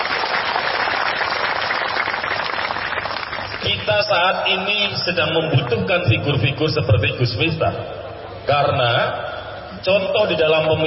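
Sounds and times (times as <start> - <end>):
audience applause at a religious talk: 0.0 - 3.8
speech: 3.6 - 10.8.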